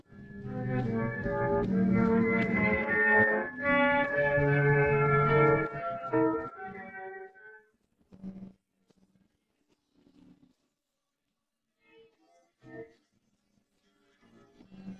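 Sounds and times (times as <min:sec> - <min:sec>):
guitar: 0:00.1 - 0:07.4.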